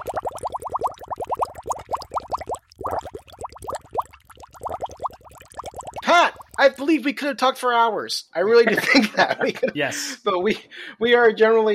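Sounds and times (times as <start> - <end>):
submarine surfacing sound effect of rapid bubbling: 0.0 - 7.0
speech: 6.6 - 11.7
laughter: 8.5 - 10.7.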